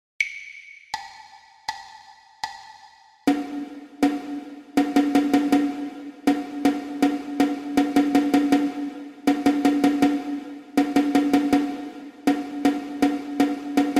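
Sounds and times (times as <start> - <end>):
rhythmic dictation exercise for ear training: 0.2 - 13.9.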